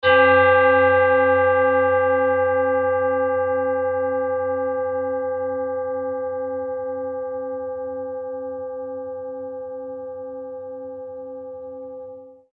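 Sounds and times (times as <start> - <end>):
Tibetan bowl in C: 0.0 - 12.5.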